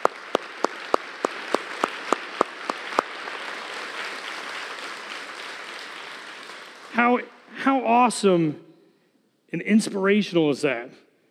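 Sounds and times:
audience clapping: 0:00.0 - 0:07.5
speech: 0:07.0 - 0:08.6, 0:09.5 - 0:11.0.

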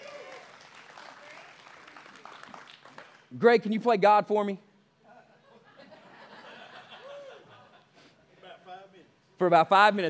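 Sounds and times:
audience hand clapping: 0:00.0 - 0:03.3
speech: 0:03.3 - 0:04.7, 0:09.5 - 0:10.0
laughter: 0:05.1 - 0:08.0.

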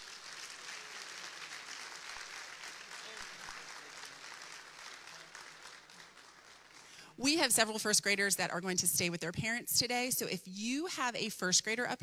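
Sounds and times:
round of applause: 0:00.0 - 0:07.1
speech: 0:07.2 - 0:12.0.

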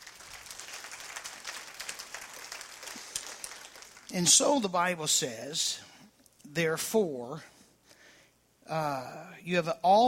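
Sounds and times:
audience clapping: 0:00.0 - 0:04.6
speech: 0:04.1 - 0:05.9, 0:06.6 - 0:07.5, 0:08.7 - 0:10.0.

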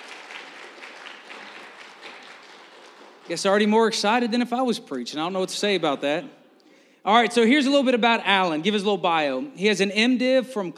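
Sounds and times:
audience clapping: 0:00.0 - 0:03.9
speech: 0:03.3 - 0:06.4, 0:07.0 - 0:10.7.

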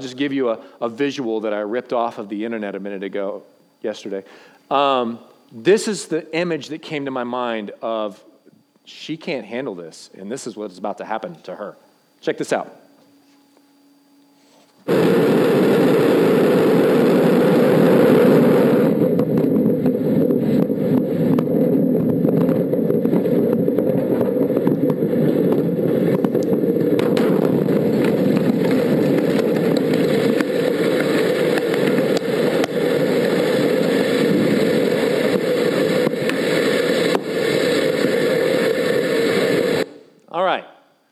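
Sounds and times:
speech: 0:00.0 - 0:12.8
rocket attempting to launch: 0:14.9 - 0:40.0.

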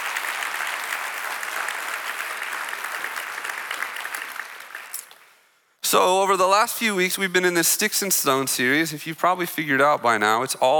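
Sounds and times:
audience applause: 0:00.0 - 0:05.4
speech: 0:05.9 - 0:10.7.

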